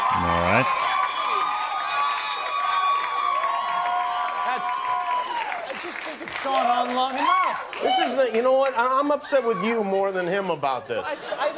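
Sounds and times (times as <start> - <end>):
cheers and whoops: 0.0 - 5.8, 7.1 - 8.4
crowd applauding: 0.0 - 9.2
speech: 8.4 - 11.5.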